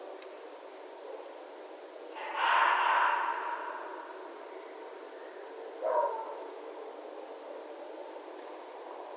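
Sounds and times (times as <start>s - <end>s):
red fox calling: 2.1s - 6.5s.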